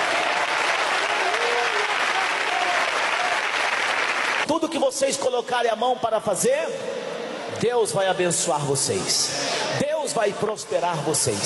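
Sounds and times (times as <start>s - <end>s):
audience clapping hands: 0.0s - 4.5s
speech: 4.7s - 11.4s.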